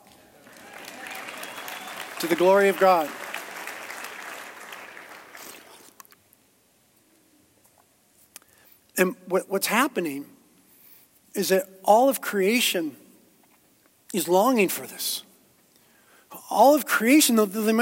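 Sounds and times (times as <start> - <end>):
audience applause: 0.4 - 6.0
speech: 2.2 - 3.2, 9.0 - 10.4, 11.4 - 13.0, 14.1 - 15.3, 16.5 - 17.8.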